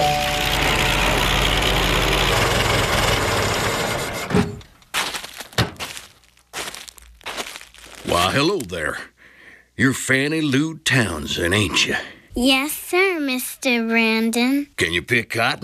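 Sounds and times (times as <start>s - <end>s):
car pulling up and stopping: 0.0s - 4.8s
speech: 8.4s - 9.1s, 9.8s - 15.6s.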